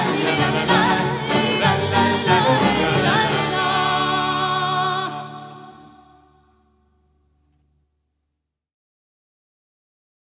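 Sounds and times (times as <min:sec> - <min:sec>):
freilach klezmer dance tune: 0:00.0 - 0:06.5.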